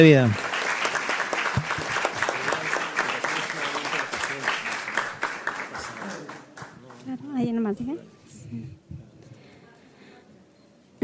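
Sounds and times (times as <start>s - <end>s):
speech: 0.0s - 0.4s
crowd applause: 0.0s - 7.1s.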